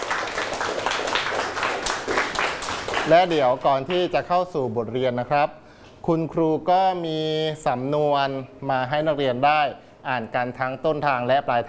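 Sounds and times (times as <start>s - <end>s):
hand clapping: 0.0s - 4.0s
speech: 3.1s - 11.6s.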